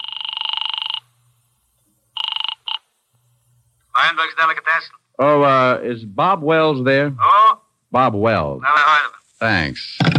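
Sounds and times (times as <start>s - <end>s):
telephone ringing down the line after dialing: 0.0s - 1.1s, 2.2s - 2.9s
speech: 4.1s - 10.1s.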